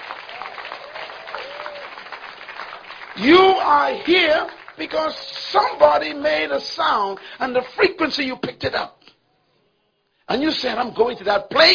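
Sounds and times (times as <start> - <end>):
audience clapping: 0.0 - 8.0
thin cheers and whoops: 0.2 - 2.1
speech: 3.2 - 9.0, 10.3 - 11.7.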